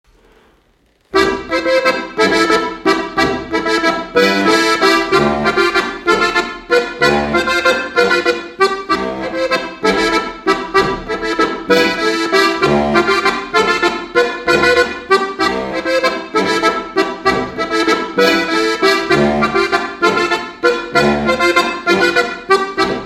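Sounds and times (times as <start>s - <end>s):
waltz music: 1.1s - 23.0s.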